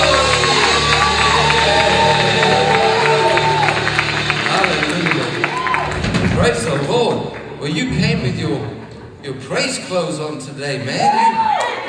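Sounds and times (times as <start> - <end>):
audience shouting: 0.0 - 6.1
audience clapping: 0.0 - 9.0
speech: 9.9 - 11.4.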